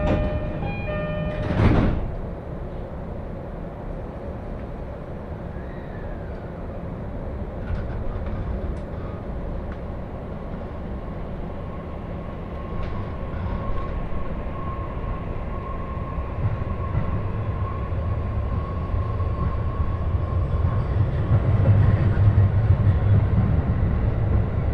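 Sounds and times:
sharp clank with a brief ringing tone: 0.0s - 2.0s
Joban Line local train rumbling: 0.0s - 24.7s.

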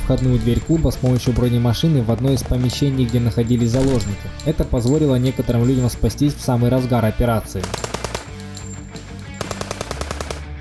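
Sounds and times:
speech: 0.1s - 7.9s
automatic gunfire bursts in an exchange of fire: 7.6s - 8.6s, 9.2s - 10.4s.

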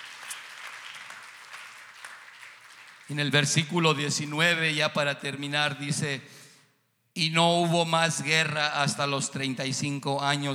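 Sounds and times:
audience applauding: 0.0s - 3.8s
speech: 3.1s - 6.4s, 7.2s - 10.5s.

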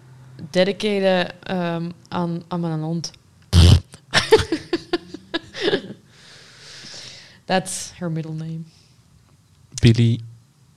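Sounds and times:
speech: 0.5s - 3.2s, 7.5s - 8.8s, 9.8s - 10.3s
fart sound jingle: 3.6s - 4.0s
laughter: 4.1s - 6.0s.

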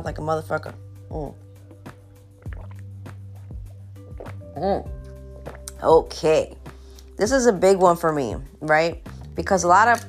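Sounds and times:
speech: 0.0s - 1.4s, 4.6s - 5.0s, 5.8s - 6.6s, 7.2s - 10.0s
slurping sip of hot tea: 2.4s - 3.5s
wet clicks and swallowing: 2.4s - 5.8s.

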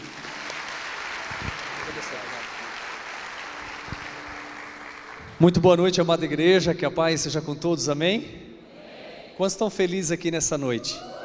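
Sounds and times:
audience applause: 0.0s - 5.6s
speech: 5.4s - 8.4s, 9.4s - 11.1s.

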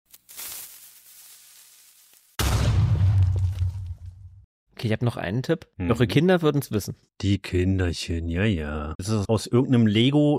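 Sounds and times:
video game fuse hissing and crackling: 0.1s - 2.4s
video-game style rumbling explosion with debris noise: 2.4s - 4.5s
speech: 4.8s - 10.3s.

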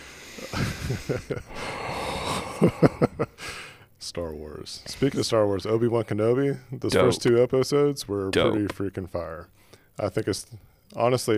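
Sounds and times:
person doing a breathing exercise: 0.0s - 3.9s
speech: 0.9s - 1.6s, 2.6s - 11.3s.

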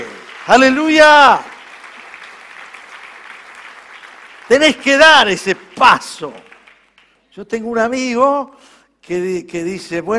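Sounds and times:
audience applause: 0.0s - 7.2s
speech: 0.5s - 1.5s, 4.5s - 6.5s, 7.4s - 10.1s.

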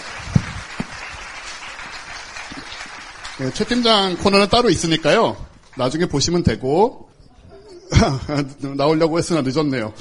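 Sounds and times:
audience applause: 0.0s - 6.0s
speech: 3.4s - 7.0s, 7.9s - 9.9s.

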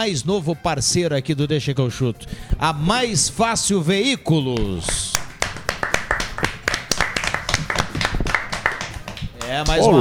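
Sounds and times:
speech: 0.0s - 5.2s, 9.5s - 9.9s
small group clapping: 4.5s - 9.9s.

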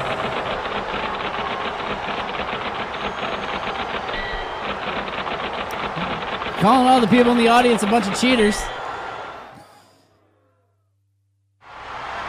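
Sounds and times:
typewriter sound in theme song: 0.0s - 8.5s
speech: 6.6s - 8.8s.

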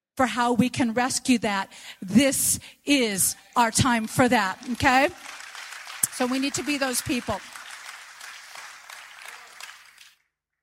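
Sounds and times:
speech: 0.2s - 5.4s, 6.2s - 7.6s
crowd applauding: 4.0s - 10.3s.

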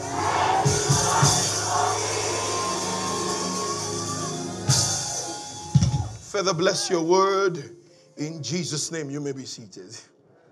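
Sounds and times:
audience screaming together on cue: 0.0s - 7.1s
speech: 6.4s - 10.1s.

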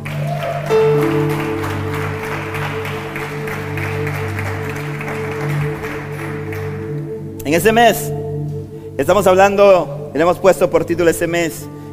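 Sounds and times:
audience applause: 0.0s - 7.1s
sustained low musical tones: 0.0s - 11.9s
speech: 7.5s - 8.2s, 9.0s - 11.8s.

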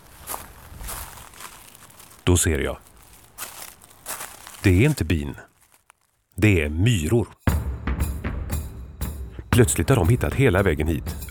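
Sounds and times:
footsteps walking closer: 0.0s - 6.3s
speech: 2.3s - 2.9s, 4.6s - 5.5s, 6.4s - 7.4s, 9.6s - 11.2s.

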